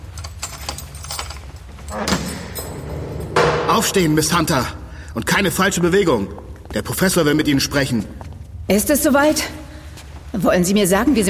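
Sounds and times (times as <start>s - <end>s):
keys jingling and scraping in a door lock: 0.0s - 3.3s
speech: 3.7s - 9.6s, 10.4s - 11.2s.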